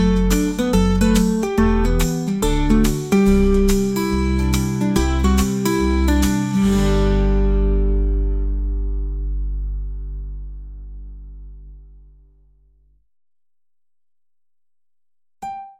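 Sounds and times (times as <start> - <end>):
gentle acoustic guitar: 0.0 - 12.4.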